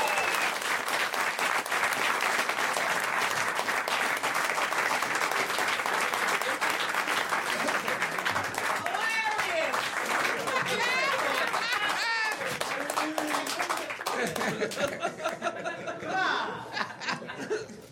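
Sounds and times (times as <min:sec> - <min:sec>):
audience applause: 0:00.0 - 0:15.4
laughter: 0:06.0 - 0:08.7, 0:10.0 - 0:17.9.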